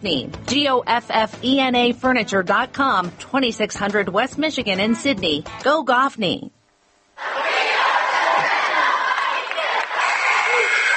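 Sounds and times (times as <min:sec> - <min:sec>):
speech: 0:00.0 - 0:06.6
noisy crowd roaring in the Fairlawn gym at a basketball game: 0:07.2 - 0:10.9.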